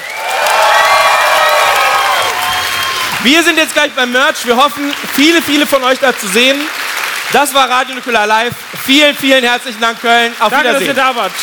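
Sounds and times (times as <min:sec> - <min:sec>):
crowd cheering and whooping: 0:00.0 - 0:03.4
loud crowd applause: 0:00.0 - 0:11.4
speech: 0:03.2 - 0:11.4.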